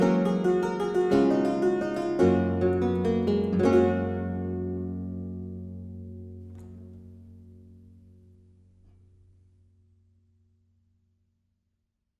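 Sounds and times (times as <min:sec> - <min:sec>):
German lute-harpsichord: 0:00.0 - 0:06.8.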